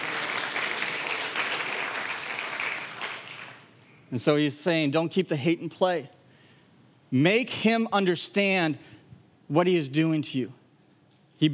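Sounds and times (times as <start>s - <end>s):
audience round of applause: 0.0s - 3.7s
speech: 4.1s - 6.2s, 7.1s - 10.6s.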